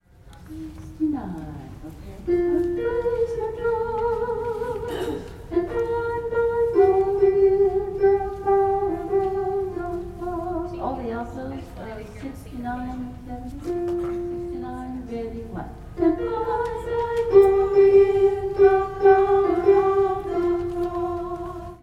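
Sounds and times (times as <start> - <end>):
alto voices singing: 2.3 - 11.5, 13.7 - 21.8.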